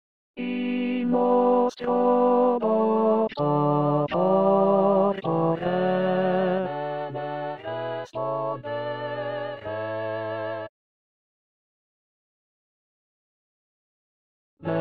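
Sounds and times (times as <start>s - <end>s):
tenor singing: 0.4s - 10.4s.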